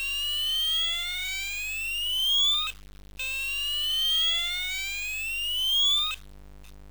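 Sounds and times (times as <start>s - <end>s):
fire alarm in Silkeborg: 0.1s - 2.7s, 3.3s - 6.2s.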